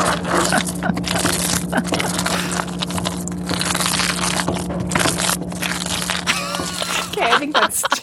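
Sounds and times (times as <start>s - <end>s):
cheese sauce bubbling and sizzling on a stove: 0.0s - 6.9s
low hum: 0.0s - 8.0s
laughter: 0.4s - 2.6s, 6.3s - 8.0s.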